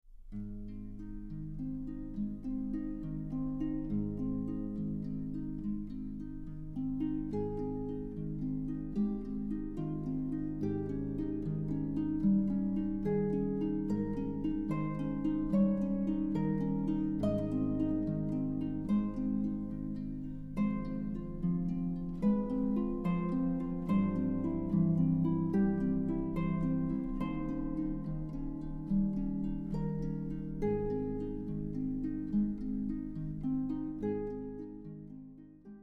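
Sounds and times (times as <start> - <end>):
harp: 0.1 - 35.8.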